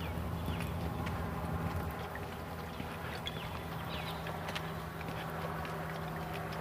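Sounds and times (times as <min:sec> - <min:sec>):
small airplane flying overhead, engine droning: 0:00.0 - 0:06.6
faint scattered clicks and footstep-like taps: 0:00.6 - 0:06.6.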